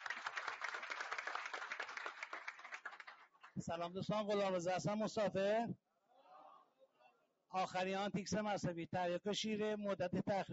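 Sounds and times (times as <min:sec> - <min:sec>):
audience applause at a Congress 60 addiction-recovery meeting: 0:00.0 - 0:03.6
speech: 0:03.6 - 0:05.8, 0:07.5 - 0:10.5.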